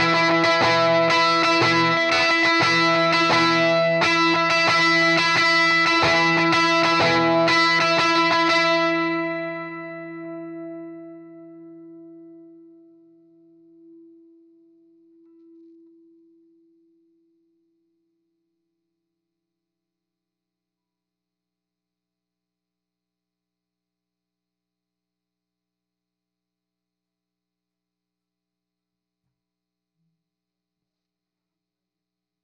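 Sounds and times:
heavy electric guitar: 0.0 - 10.8.

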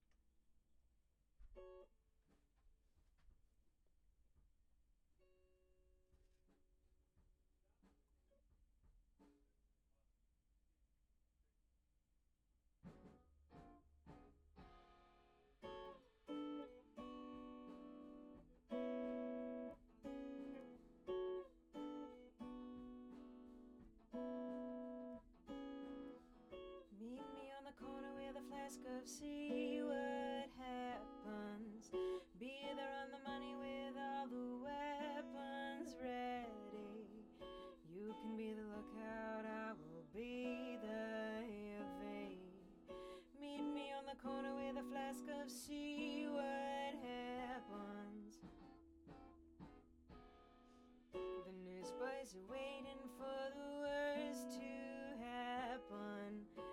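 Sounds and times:
acoustic guitar: 12.8 - 56.7.

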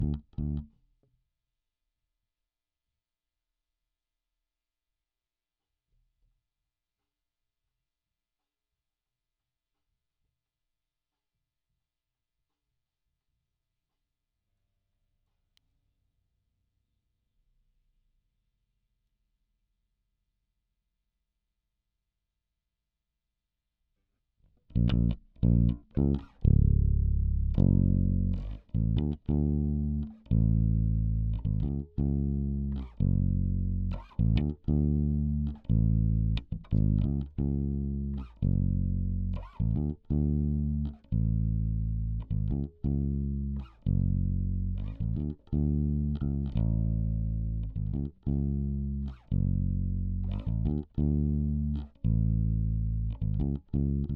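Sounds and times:
bass guitar recorded by direct input: 0.0 - 0.7, 24.7 - 54.1.

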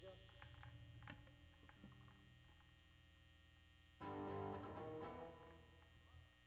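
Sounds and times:
bass: 4.0 - 6.0.

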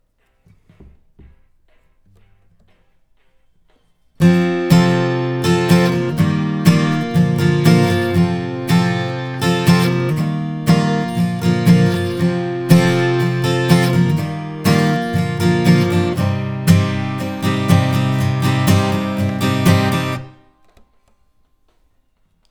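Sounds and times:
acoustic guitar: 4.1 - 21.1.

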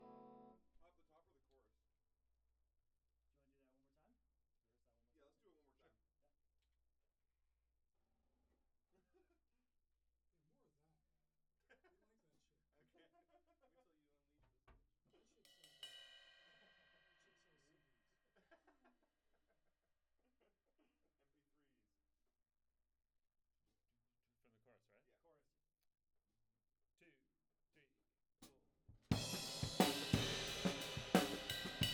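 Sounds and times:
tom drum: 29.1 - 31.9.

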